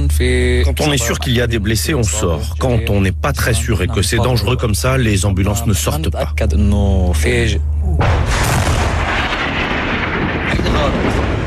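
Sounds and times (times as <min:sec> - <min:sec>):
speech: 0:00.2 - 0:08.7, 0:10.8 - 0:11.2
heavy sustained rumbling roar: 0:06.4 - 0:11.4
explosion of a strike landing: 0:08.0 - 0:11.4.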